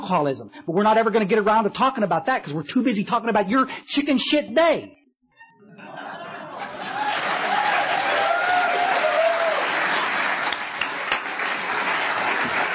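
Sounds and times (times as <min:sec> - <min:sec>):
speech: 0:00.1 - 0:05.0
laughter: 0:05.4 - 0:08.2
audience applause: 0:06.6 - 0:12.7.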